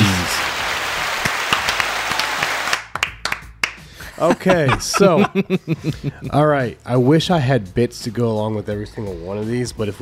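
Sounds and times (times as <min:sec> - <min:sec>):
applause sound effect: 0:00.0 - 0:03.9
laughter: 0:04.0 - 0:06.3
speech: 0:04.2 - 0:09.9.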